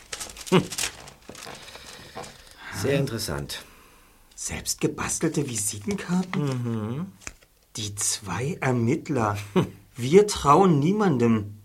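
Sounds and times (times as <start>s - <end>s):
paper envelope being handled and opened: 0.0s - 3.4s, 5.1s - 7.7s
speech: 0.5s - 0.9s, 2.8s - 3.7s, 4.4s - 11.6s.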